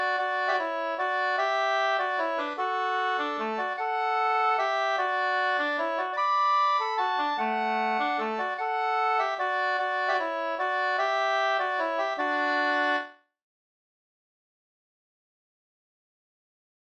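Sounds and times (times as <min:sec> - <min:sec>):
waltz music: 0:00.0 - 0:13.1.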